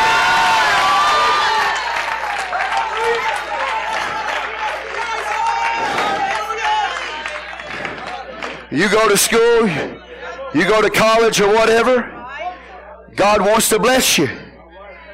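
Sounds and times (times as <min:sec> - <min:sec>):
audience shouting: 0:00.0 - 0:08.7
audience clapping: 0:00.7 - 0:09.4
speech: 0:08.8 - 0:12.1, 0:13.2 - 0:14.4.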